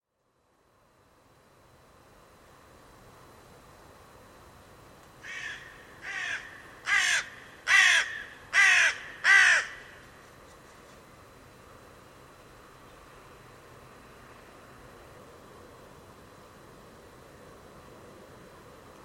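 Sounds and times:
bird giving harsh crow-like caws: 0:05.2 - 0:10.0.

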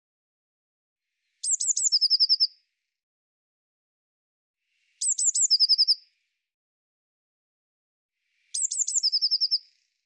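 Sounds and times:
Eurasian blue tit phrase of piercing high notes and rapid trill: 0:01.4 - 0:02.5, 0:05.0 - 0:06.0, 0:08.6 - 0:09.6.

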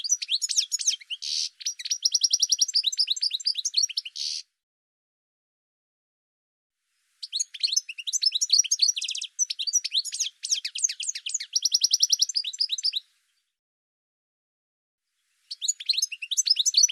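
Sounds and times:
bird song with high chirps, down-slurred notes and quick trills: 0:00.0 - 0:04.5, 0:07.0 - 0:13.6, 0:15.0 - 0:16.9.

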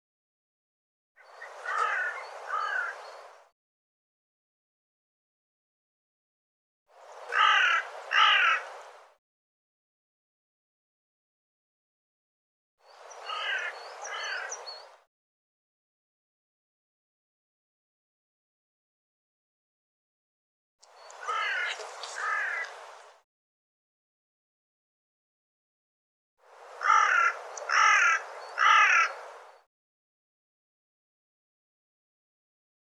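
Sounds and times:
bird giving hoarse croaking calls: 0:01.2 - 0:03.1, 0:07.3 - 0:08.7, 0:13.2 - 0:14.8, 0:21.1 - 0:22.8, 0:26.8 - 0:29.2.

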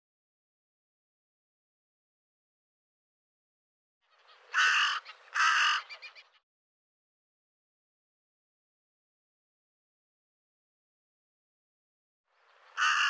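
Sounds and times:
bird giving harsh raspy caws: 0:04.1 - 0:06.4, 0:12.7 - 0:13.0.

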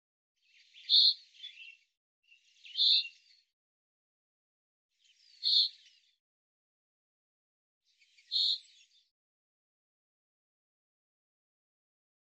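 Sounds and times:
bird chirps: 0:00.5 - 0:03.5, 0:05.0 - 0:06.2, 0:08.0 - 0:09.1.

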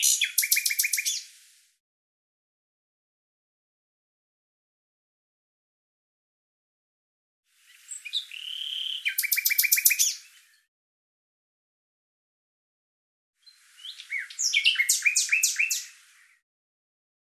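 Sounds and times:
bird calling in rapid high chirps: 0:00.0 - 0:01.3, 0:07.8 - 0:10.3, 0:13.8 - 0:15.9.

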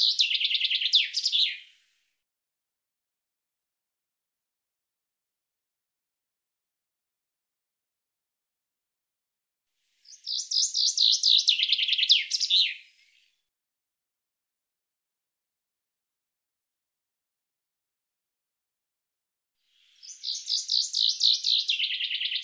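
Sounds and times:
bird trilling song: 0:00.0 - 0:01.8, 0:10.0 - 0:13.3, 0:19.8 - 0:22.4.

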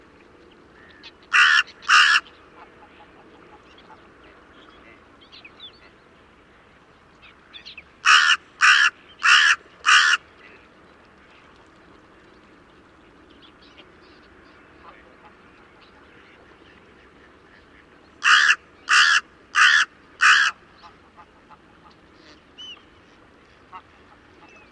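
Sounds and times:
bird cawing: 0:00.8 - 0:02.3, 0:08.0 - 0:10.2, 0:18.2 - 0:20.6.

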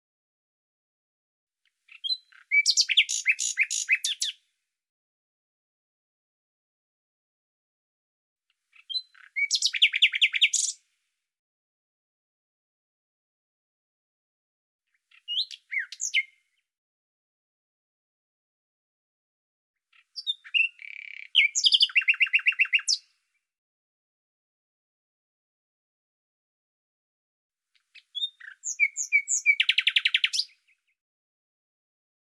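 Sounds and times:
bird song of whistles, chirps and buzzy trill: 0:01.6 - 0:04.5, 0:08.5 - 0:11.0, 0:14.9 - 0:16.7, 0:19.8 - 0:23.5, 0:27.7 - 0:31.0.

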